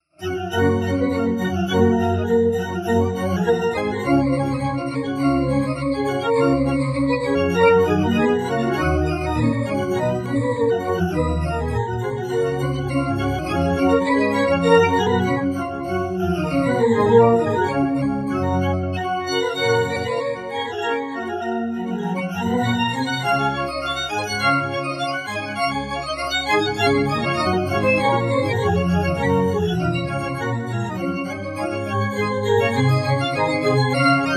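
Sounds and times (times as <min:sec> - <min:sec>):
melodized classical piece: 0:00.0 - 0:34.3.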